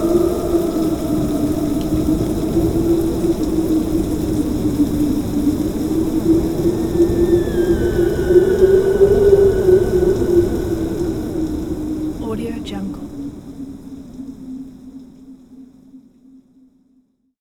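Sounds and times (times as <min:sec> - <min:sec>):
ghost wailing wind: 0:00.0 - 0:13.5
thunderstorm: 0:00.0 - 0:14.1.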